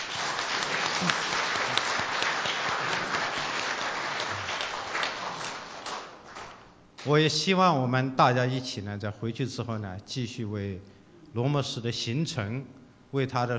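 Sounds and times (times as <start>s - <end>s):
audience applause: 0.0s - 6.7s
speech: 1.0s - 1.4s, 7.0s - 13.5s.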